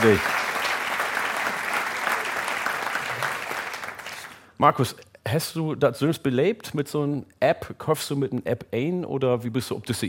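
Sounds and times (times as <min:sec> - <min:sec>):
speech: 0:00.0 - 0:00.4, 0:04.6 - 0:10.0
crowd applauding: 0:00.0 - 0:04.4.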